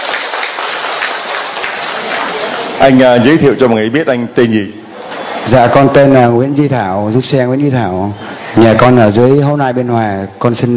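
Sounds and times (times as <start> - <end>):
applause welcoming a man to speak at a gathering: 0.0 - 3.0
speech: 2.8 - 4.8, 5.5 - 10.7.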